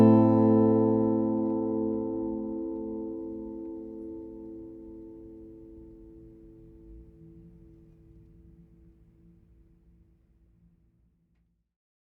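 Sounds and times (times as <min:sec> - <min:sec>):
guitars: 0:00.0 - 0:06.1.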